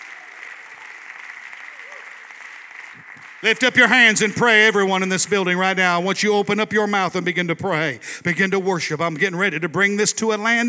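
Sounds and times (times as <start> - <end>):
audience clapping hands: 0.0 - 5.8
speech: 3.4 - 10.6.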